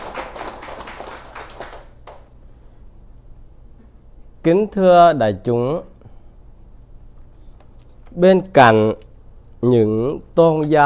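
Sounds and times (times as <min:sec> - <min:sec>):
audience applause: 0:00.0 - 0:02.2
low steady hum: 0:00.0 - 0:10.8
speech: 0:04.4 - 0:05.9, 0:08.2 - 0:10.8.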